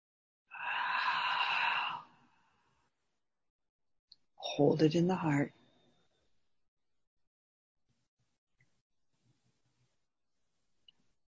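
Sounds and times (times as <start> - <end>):
deep inhale during meditation: 0.5 - 2.9
speech: 4.6 - 5.6.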